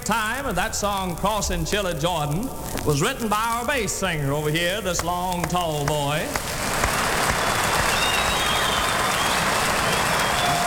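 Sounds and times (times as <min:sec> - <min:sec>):
speech: 0:00.1 - 0:06.8
audience applause: 0:06.3 - 0:10.6
faint whistles: 0:07.3 - 0:10.6.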